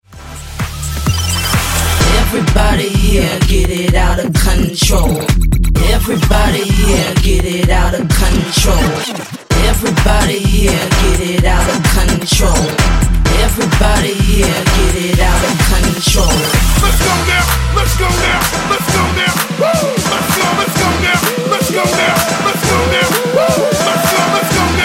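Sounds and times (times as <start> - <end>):
EDM bootleg: 0.0 - 24.8.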